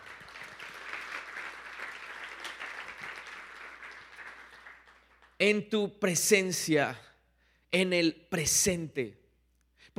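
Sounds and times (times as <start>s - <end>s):
audience applause: 0.0s - 5.4s
speech: 5.4s - 7.0s, 7.7s - 9.2s.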